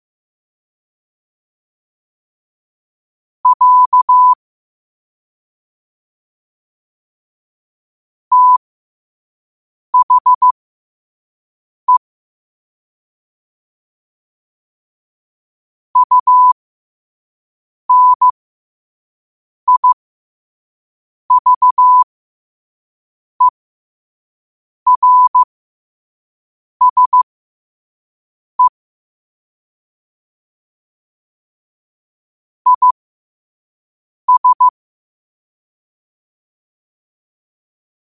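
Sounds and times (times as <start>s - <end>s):
morse code at 5 wpm: 3.5s - 4.4s, 8.3s - 8.6s, 10.0s - 10.5s, 16.0s - 16.6s, 17.9s - 18.4s, 19.7s - 20.0s, 21.3s - 22.1s, 24.9s - 25.5s, 26.8s - 27.3s, 32.7s - 33.0s, 34.3s - 34.7s.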